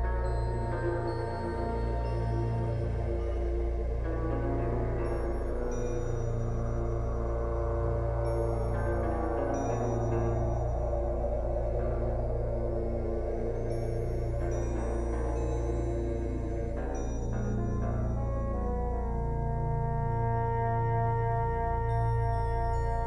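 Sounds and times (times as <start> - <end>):
theta brainwave zen meditation music: 0.0 - 23.0.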